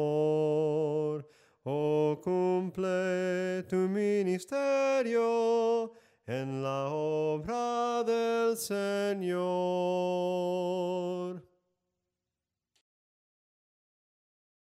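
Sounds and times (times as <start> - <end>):
soprano singing: 0.0 - 11.4.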